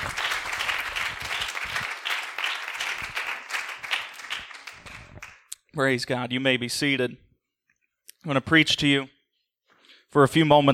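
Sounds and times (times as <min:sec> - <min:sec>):
audience clapping hands: 0:00.0 - 0:05.5
speech: 0:05.8 - 0:07.3, 0:08.2 - 0:09.2, 0:10.1 - 0:10.7.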